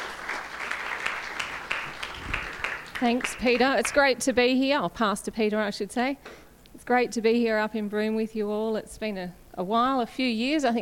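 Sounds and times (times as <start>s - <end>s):
audience clapping welcoming a pastor at a church gathering in Broome: 0.0s - 4.2s
speech: 3.0s - 10.8s.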